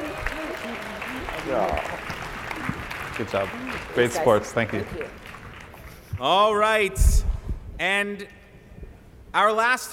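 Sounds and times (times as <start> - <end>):
audience applauding: 0.0 - 6.2
speech: 1.4 - 2.1, 3.2 - 5.3, 6.2 - 7.2, 7.8 - 8.4, 9.3 - 9.9.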